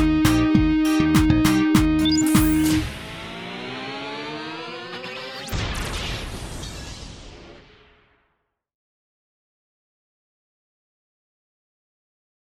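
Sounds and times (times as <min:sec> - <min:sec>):
rock practice music in E flat: 0:00.0 - 0:02.8.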